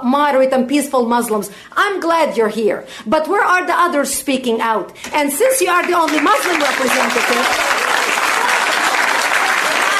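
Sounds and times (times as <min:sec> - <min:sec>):
speech: 0:00.0 - 0:07.8
audience applause: 0:06.0 - 0:09.9.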